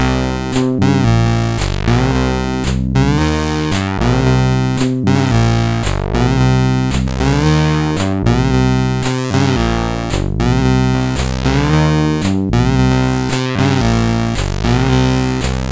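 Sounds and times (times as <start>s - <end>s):
MOS6581R4 SID chip music: 0.0s - 15.7s.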